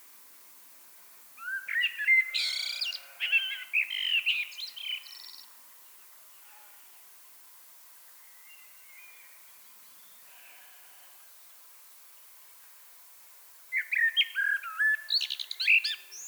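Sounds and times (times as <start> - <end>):
Common blackbird singing: 1.4 - 5.4, 13.7 - 16.2.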